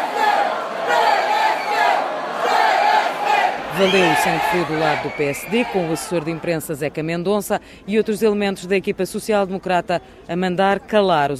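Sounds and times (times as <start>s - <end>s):
rival political supporters shouting and chanting: 0.0s - 6.7s
speech: 3.8s - 11.3s.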